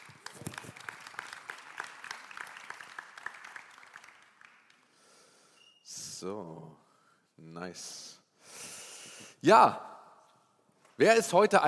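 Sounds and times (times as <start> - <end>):
audience applause: 0.0 - 5.0
speech: 6.2 - 6.8, 7.4 - 8.2, 9.4 - 9.9, 11.0 - 11.6.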